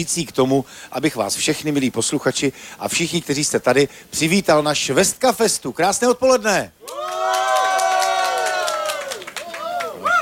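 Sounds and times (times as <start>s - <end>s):
speech: 0.0s - 7.4s
clapping: 6.8s - 10.0s
festival crowd cheering and whooping: 6.8s - 10.2s.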